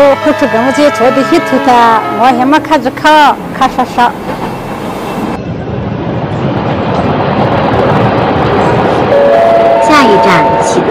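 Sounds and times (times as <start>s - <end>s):
train horn: 0.0s - 3.4s, 9.1s - 10.9s
train running on a railway: 0.0s - 10.9s
speech: 0.2s - 4.4s, 10.2s - 10.9s.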